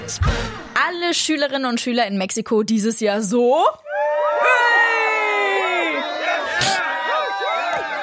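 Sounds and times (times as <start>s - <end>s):
speech: 0.1s - 3.9s
children cheering: 3.9s - 8.0s.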